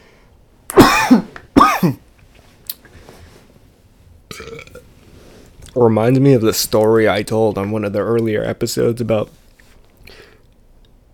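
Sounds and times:
person coughing from choking on water: 0.7s - 2.0s
speech: 1.8s - 2.0s, 5.8s - 9.4s.

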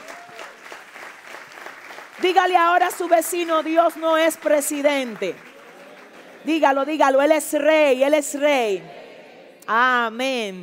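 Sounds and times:
audience applause: 0.0s - 7.4s
speech: 2.2s - 5.5s, 6.4s - 9.0s, 9.7s - 10.6s.

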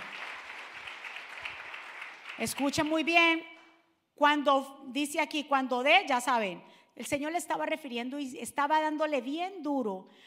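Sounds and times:
audience applauding loudly: 0.0s - 2.9s
speech: 2.4s - 3.5s, 4.2s - 10.2s.

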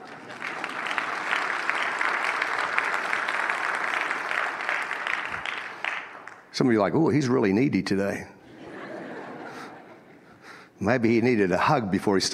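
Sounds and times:
laughter: 0.0s - 1.0s, 8.4s - 10.4s
audience clapping: 0.0s - 6.9s
speech: 6.6s - 8.3s, 10.8s - 12.3s.

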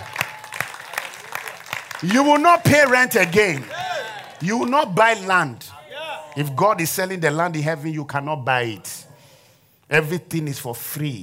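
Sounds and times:
audience clapping in rhythm: 0.0s - 5.6s
speech: 2.0s - 3.8s, 4.4s - 5.7s, 6.4s - 8.9s, 9.9s - 11.2s.

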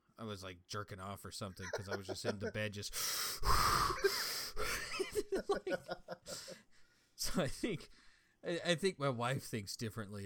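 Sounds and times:
speech: 0.2s - 6.6s, 7.2s - 10.2s
laughter: 1.6s - 2.7s, 4.0s - 6.6s
person imitating heavy ragged breathing: 2.9s - 4.8s.

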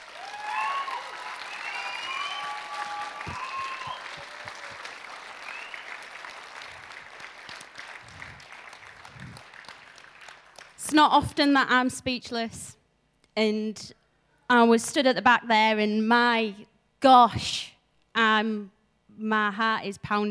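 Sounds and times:
crowd cheering: 0.0s - 10.4s
large audience applause: 0.0s - 10.8s
whistles: 0.4s - 4.3s, 5.4s - 6.0s
speech: 10.9s - 12.8s, 13.4s - 20.2s.

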